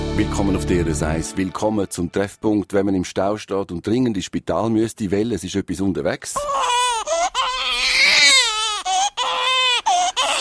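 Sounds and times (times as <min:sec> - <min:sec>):
speech: 0:00.2 - 0:06.8
baby crying loudly: 0:06.4 - 0:10.3.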